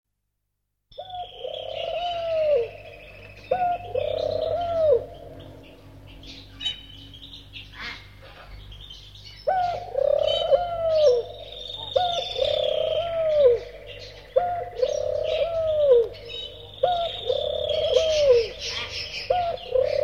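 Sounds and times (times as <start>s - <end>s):
bird giving drawn-out cooing tonal notes: 1.0s - 6.9s, 9.4s - 20.0s.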